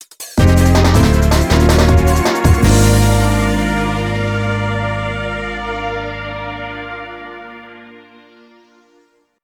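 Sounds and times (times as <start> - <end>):
jingle: 0.4 - 7.6.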